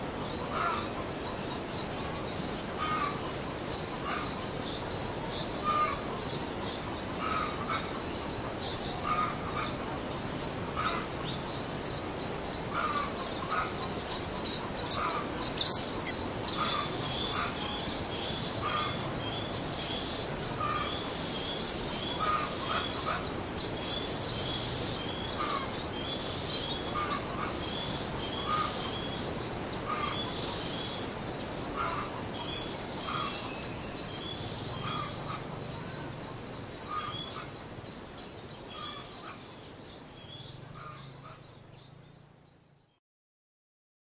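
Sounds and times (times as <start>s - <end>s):
birds in a park area: 0.0s - 43.0s
light breeze in a park area: 0.0s - 43.0s.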